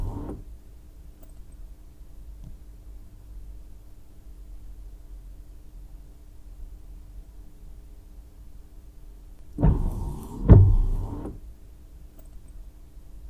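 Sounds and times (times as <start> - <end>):
windshield wiper: 0.0 - 0.4, 9.6 - 11.4.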